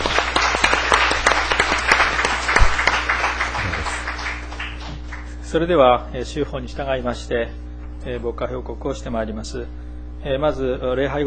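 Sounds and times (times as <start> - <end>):
roomful of people applauding: 0.0 - 5.5
faint low hum: 0.0 - 11.2
speech: 5.5 - 11.2.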